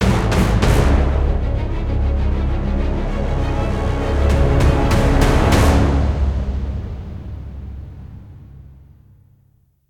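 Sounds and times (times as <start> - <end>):
JRPG death music: 0.0 - 7.7.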